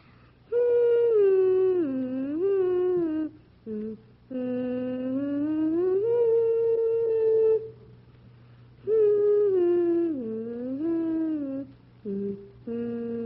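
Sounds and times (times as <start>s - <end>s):
child humming a classical melody: 0.0s - 7.9s, 8.8s - 13.2s.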